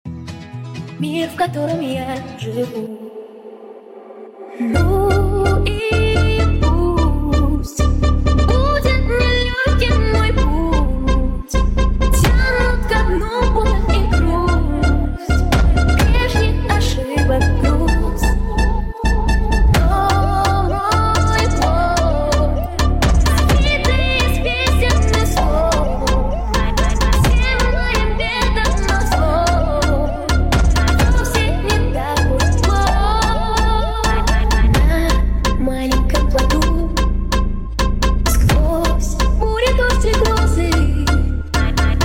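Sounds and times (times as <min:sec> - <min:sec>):
phonk remix: 0:01.7 - 0:42.0.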